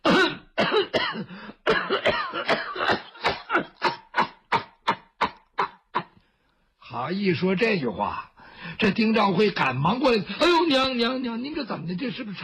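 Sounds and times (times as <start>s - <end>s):
performer imitating an elderly woman's coughing fit: 0.0s - 6.2s
speech: 7.0s - 12.4s.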